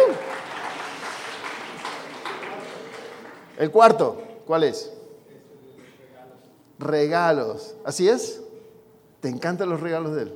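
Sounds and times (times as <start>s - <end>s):
audience applause: 0.0s - 3.8s
speech: 3.6s - 5.0s, 6.8s - 8.4s, 9.2s - 10.3s.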